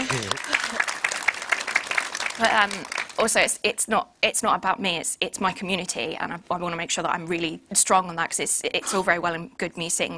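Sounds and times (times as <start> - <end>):
round of applause: 0.0 - 3.2
speech: 2.4 - 10.1.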